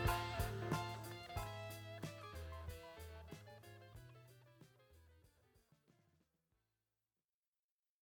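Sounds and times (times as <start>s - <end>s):
instrumental studio outtake: 0.0s - 5.4s.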